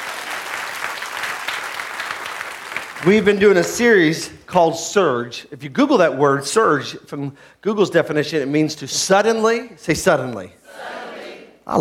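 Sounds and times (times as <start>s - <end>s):
church congregation clapping hands: 0.0s - 4.2s
speech: 3.0s - 10.6s.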